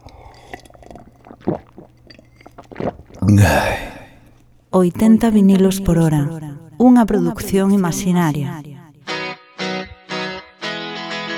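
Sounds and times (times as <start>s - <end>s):
person drinking a glass of water: 0.0s - 4.7s
speech: 3.3s - 3.8s, 4.7s - 8.7s.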